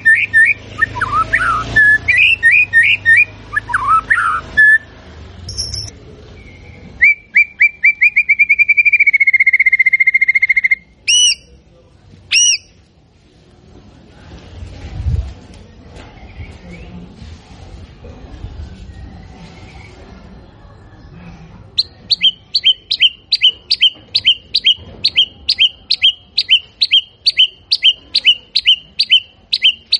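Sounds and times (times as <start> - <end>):
White-rumped shama whistled trill: 0.0 - 4.8, 5.5 - 11.5, 12.3 - 12.7, 21.8 - 29.9.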